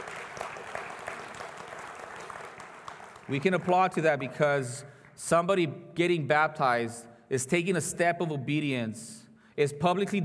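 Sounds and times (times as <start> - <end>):
church congregation applauding a baptism: 0.0 - 5.3
speech: 3.3 - 10.2.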